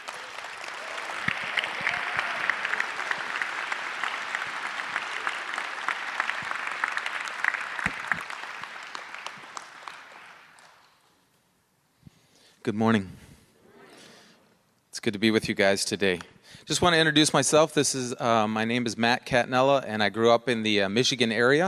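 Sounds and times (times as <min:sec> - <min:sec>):
audience applause: 0:00.0 - 0:10.9
speech: 0:12.7 - 0:13.2, 0:15.0 - 0:21.6.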